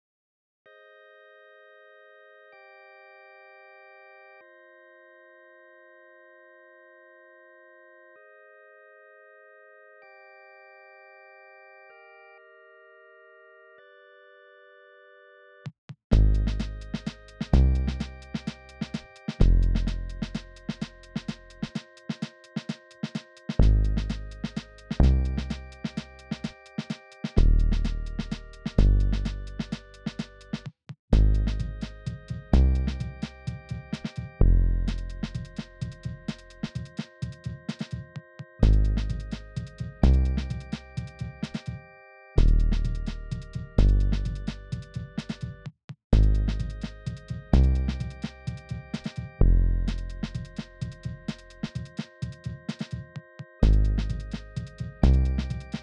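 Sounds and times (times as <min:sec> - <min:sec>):
music track at 128 BPM: 0:16.1 - 0:30.6, 0:31.2 - 0:45.6, 0:46.2 - 0:55.8.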